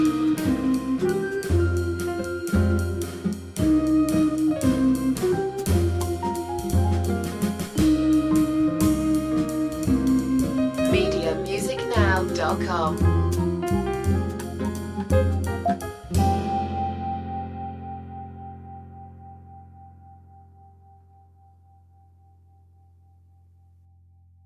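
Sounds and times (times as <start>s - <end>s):
waltz music: 0.0s - 18.5s.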